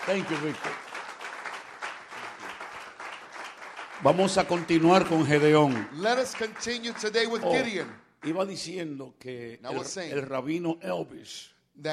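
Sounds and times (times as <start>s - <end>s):
speech: 0.0s - 0.8s, 4.0s - 11.9s
crowd applauding: 0.0s - 8.5s.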